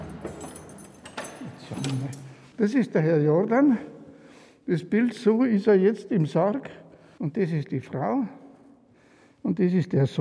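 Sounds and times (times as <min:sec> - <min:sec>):
old keys jangling at a door: 0:00.0 - 0:02.6
speech: 0:01.7 - 0:04.0, 0:04.7 - 0:08.4, 0:09.4 - 0:10.2.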